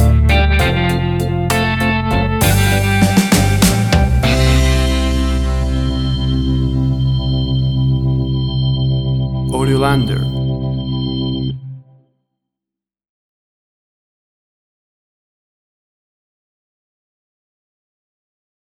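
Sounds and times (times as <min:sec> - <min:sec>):
1950s school prom slow dance music: 0:00.0 - 0:10.9.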